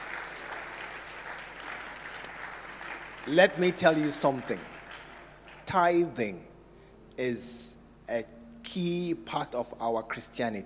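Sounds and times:
audience clapping: 0:00.0 - 0:06.1
speech: 0:03.3 - 0:04.7, 0:05.7 - 0:06.5, 0:07.2 - 0:10.6.

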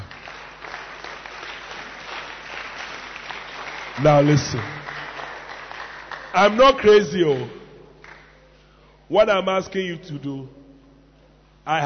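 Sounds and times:
crowd clapping: 0:00.0 - 0:08.6
speech: 0:04.0 - 0:04.8, 0:06.3 - 0:07.6, 0:09.1 - 0:10.6, 0:11.7 - 0:11.8.

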